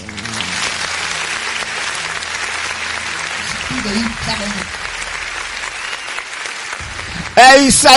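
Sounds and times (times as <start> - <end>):
applause sound effect from a studio button: 0.0 - 7.9.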